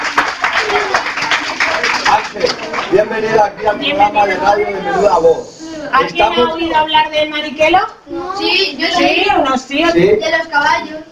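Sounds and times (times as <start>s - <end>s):
live audience applauding a charro and tamborilero guest: 0.0s - 3.5s
speech: 2.9s - 11.1s.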